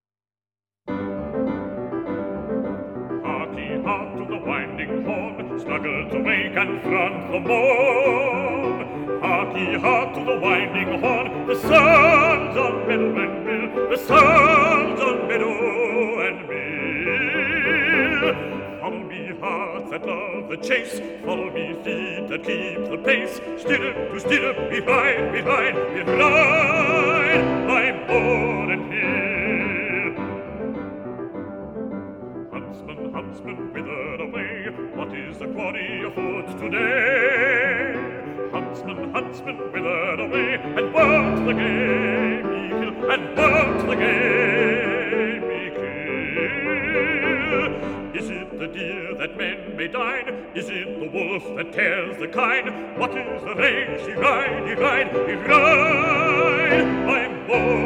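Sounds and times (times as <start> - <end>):
piano: 0.9 - 57.8
person singing: 3.1 - 30.8, 32.5 - 57.8.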